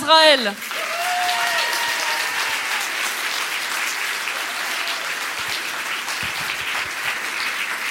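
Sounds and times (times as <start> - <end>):
speech: 0.1 - 0.8
audience applause: 0.6 - 7.8.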